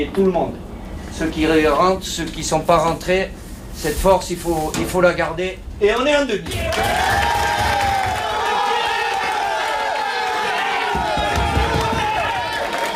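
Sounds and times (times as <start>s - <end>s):
speech: 0.0s - 7.4s
French national football team players shouting and chanting celebrating a win: 6.4s - 12.8s.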